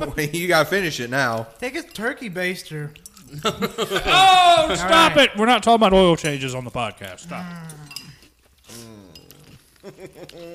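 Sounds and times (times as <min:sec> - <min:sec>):
speech: 0:00.0 - 0:08.0, 0:09.8 - 0:10.5
laughter: 0:03.3 - 0:05.2, 0:09.8 - 0:10.5
spoon clinking in a bowl while eating cereal: 0:07.6 - 0:08.3.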